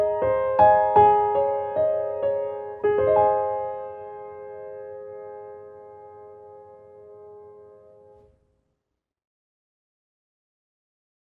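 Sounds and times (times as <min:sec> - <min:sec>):
piano: 0:00.0 - 0:08.5.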